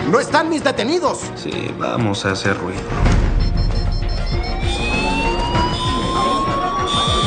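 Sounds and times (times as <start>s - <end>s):
speech: 0.1s - 3.1s
fire alarm ringing: 3.3s - 7.2s.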